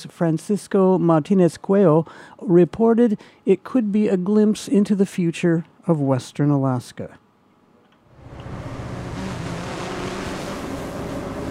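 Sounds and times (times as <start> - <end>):
speech: 0.0 - 7.2
delivery drone flying in to land: 8.1 - 11.4.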